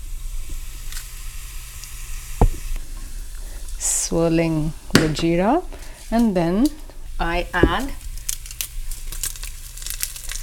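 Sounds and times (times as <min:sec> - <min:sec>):
hot ghee bubbling and sizzling in a pan: 0:00.0 - 0:10.4
speech: 0:04.1 - 0:08.0
sharp pop: 0:04.9 - 0:05.2.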